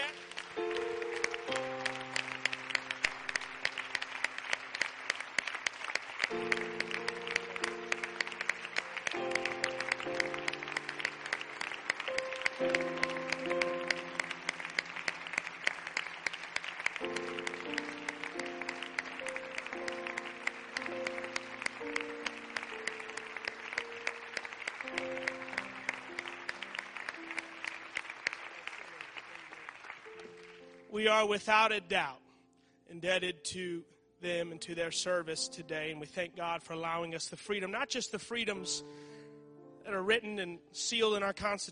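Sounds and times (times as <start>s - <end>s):
audience applause: 0.0s - 30.9s
speech: 31.0s - 32.2s, 33.0s - 39.0s, 39.9s - 41.6s.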